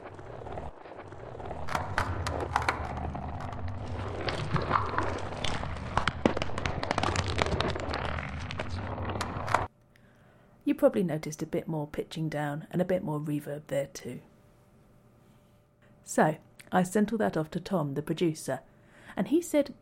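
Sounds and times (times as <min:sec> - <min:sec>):
crackling pops and sharp bursts: 0:00.0 - 0:09.7
speech: 0:10.8 - 0:14.3, 0:16.2 - 0:19.8.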